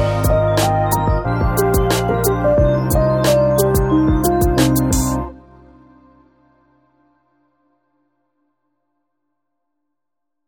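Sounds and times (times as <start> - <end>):
music beat: 0.0 - 5.4.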